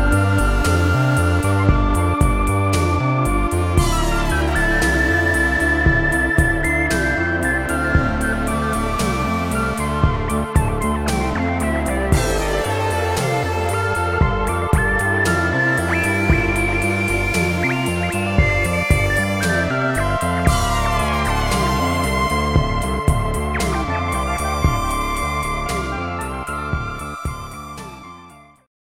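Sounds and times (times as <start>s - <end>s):
Prophet 600 synthesizer: 0.0s - 28.7s.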